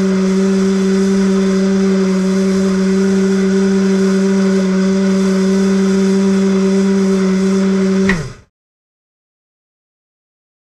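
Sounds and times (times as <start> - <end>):
large electric motor running: 0.0 - 8.5.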